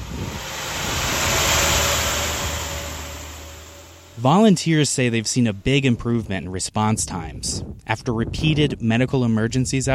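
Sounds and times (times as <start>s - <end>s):
truck driving off: 0.0s - 6.3s
speech: 4.2s - 9.9s.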